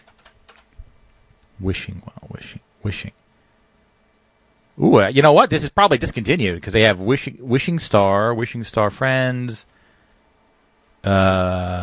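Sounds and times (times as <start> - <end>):
typing a search on a computer keyboard: 0.0 - 1.1
speech: 1.6 - 3.2, 4.8 - 9.8, 11.0 - 11.8.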